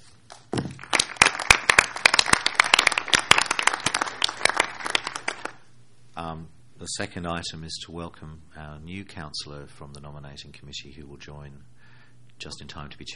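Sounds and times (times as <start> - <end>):
applause at a council meeting as a resolution passes by acclamation: 0.7 - 5.6
speech: 6.9 - 11.8, 12.4 - 13.1.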